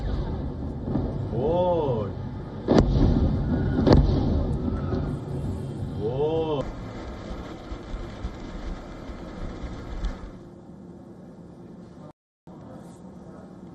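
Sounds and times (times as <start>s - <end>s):
sharp explosions in a port city: 0.0s - 10.5s
steady rumble: 0.0s - 13.7s.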